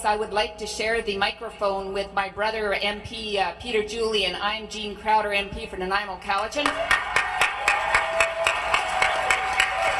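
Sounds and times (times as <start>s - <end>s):
speech: 0.0s - 7.1s
applause in parliament chamber: 6.6s - 9.9s.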